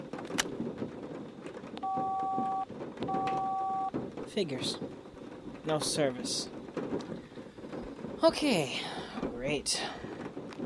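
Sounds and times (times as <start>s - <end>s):
rumbling outdoor background: 0.0s - 10.6s
cell phone keypad tones: 1.8s - 3.9s
speech: 4.3s - 5.0s, 5.6s - 7.1s, 8.2s - 10.1s.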